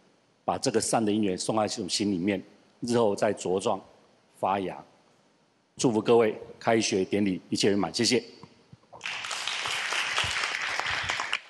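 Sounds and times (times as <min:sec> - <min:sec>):
speech: 0:00.5 - 0:04.9, 0:05.8 - 0:08.4
audience applause: 0:09.0 - 0:11.4.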